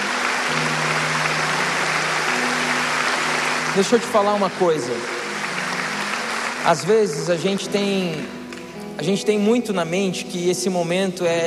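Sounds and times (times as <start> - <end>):
audience clapping: 0.0 - 9.3
speech: 3.8 - 5.1, 6.6 - 8.4, 9.0 - 11.4.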